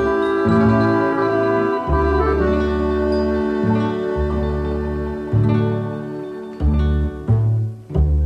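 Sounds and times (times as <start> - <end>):
bouzouki in Greece: 0.0 - 8.2.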